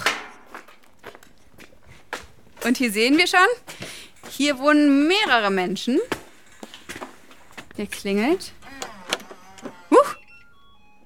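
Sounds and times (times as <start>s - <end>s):
footsteps walking up a driveway: 0.3s - 8.6s
speech: 2.6s - 6.2s, 7.8s - 8.6s.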